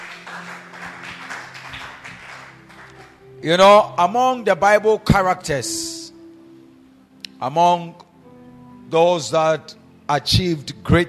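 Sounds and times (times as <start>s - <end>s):
audience clapping hands: 0.0s - 3.3s
speech: 3.4s - 5.9s, 7.4s - 8.0s, 8.9s - 11.0s.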